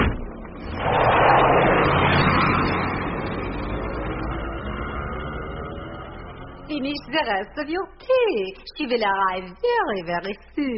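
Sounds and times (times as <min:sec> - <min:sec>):
taxi engine roaring as it pulls away in pursuit: 0:00.6 - 0:07.2
speech: 0:06.8 - 0:10.7.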